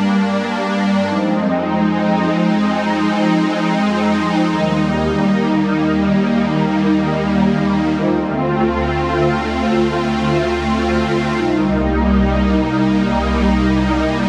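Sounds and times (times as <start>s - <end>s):
synth pad: 0.0s - 14.2s.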